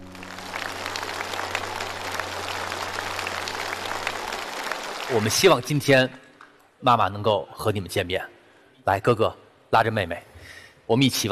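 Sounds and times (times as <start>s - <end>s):
audience applause: 0.0s - 6.0s
speech: 5.1s - 6.2s, 6.8s - 10.3s, 10.9s - 11.3s.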